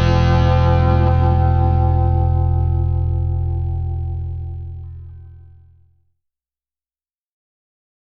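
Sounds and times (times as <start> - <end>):
guitar theme: 0.0 - 5.8.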